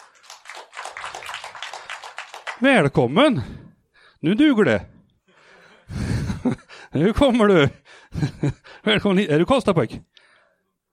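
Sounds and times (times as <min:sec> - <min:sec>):
audience clapping to welcome first-time attendees at a comedy evening: 0:00.0 - 0:03.0
speech: 0:02.6 - 0:03.6, 0:04.2 - 0:04.9, 0:07.0 - 0:10.1.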